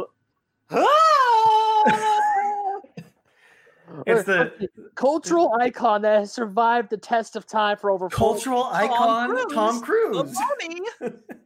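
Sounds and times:
voice imitating a loud drawn-out scream: 0.7 - 2.6
speech: 4.1 - 11.3.

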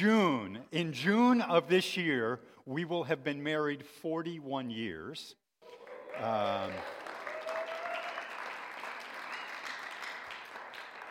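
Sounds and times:
speech: 0.0 - 7.0
audience clapping: 5.6 - 11.0.

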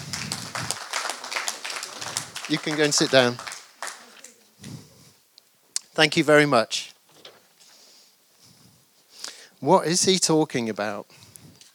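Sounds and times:
round of applause: 0.0 - 4.5
speech: 2.5 - 3.5, 6.0 - 6.8, 9.6 - 11.2.

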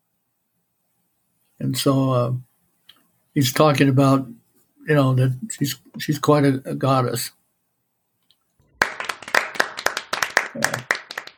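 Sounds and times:
speech: 1.6 - 2.5, 3.4 - 7.4
clapping: 8.8 - 11.3.

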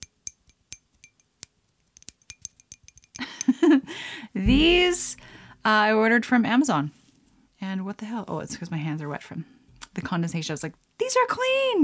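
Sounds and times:
glass straws clinking together: 0.0 - 1.4, 2.0 - 3.5
rustling and knocking: 4.4 - 5.2
speech: 4.4 - 7.0, 7.8 - 11.8.

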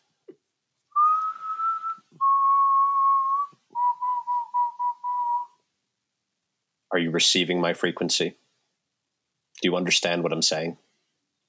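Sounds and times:
whistled bird call imitation: 0.9 - 5.6
speech: 7.0 - 8.4, 9.6 - 10.8.

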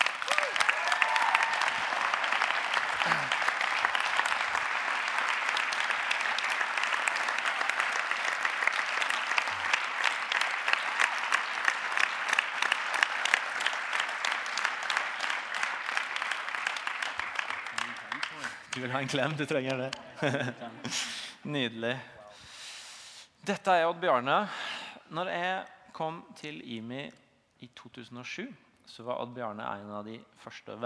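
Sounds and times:
audience applause: 0.0 - 20.5
speech: 18.8 - 22.5, 23.5 - 27.2, 27.9 - 30.8
laughter: 20.1 - 21.1.

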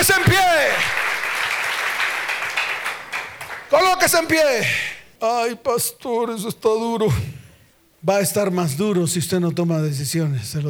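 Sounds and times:
audience applauding: 0.0 - 5.0
speech: 4.0 - 7.4, 8.0 - 10.6.

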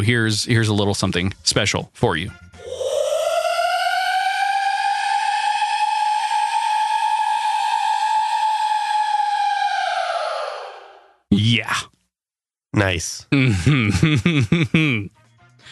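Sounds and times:
speech: 0.0 - 2.8, 12.8 - 15.6
time-stretched scream: 2.6 - 11.2
laughter: 13.3 - 15.1.

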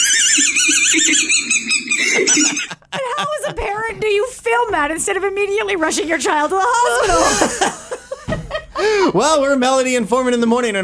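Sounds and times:
dog toy squeaker squeaking: 0.0 - 2.7
laughter: 2.0 - 4.2, 6.6 - 9.0
speech: 4.2 - 7.9, 9.0 - 10.8.

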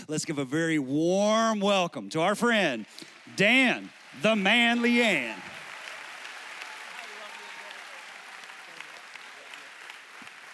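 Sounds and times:
speech: 0.1 - 5.5
audience round of applause: 2.4 - 10.5.

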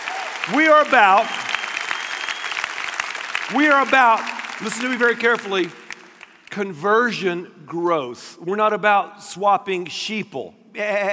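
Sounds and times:
cheering whoops: 0.0 - 3.1
audience applause: 0.0 - 6.5
speech: 0.5 - 1.4, 3.5 - 5.8, 6.5 - 11.1.

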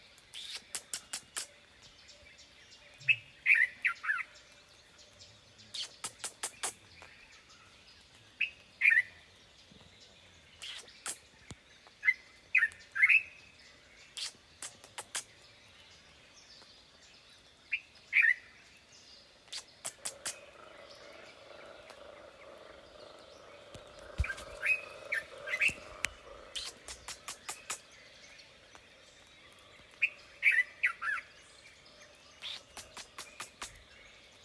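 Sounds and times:
birds calling in the Kakamega Rainforest: 0.2 - 34.4
sharp clicks and ticks: 5.8 - 6.8, 14.2 - 15.3, 19.5 - 20.6, 25.5 - 27.9, 32.4 - 33.8.

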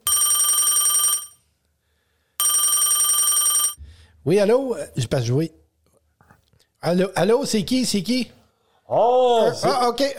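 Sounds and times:
FaceTime call ringtone on phone: 0.0 - 1.4, 2.4 - 3.8
speech: 4.2 - 5.6, 6.8 - 10.1.

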